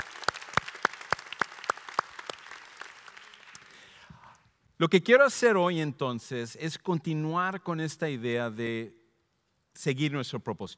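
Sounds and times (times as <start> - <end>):
audience applause: 0.0 - 3.8
speech: 4.8 - 9.0, 9.8 - 10.7.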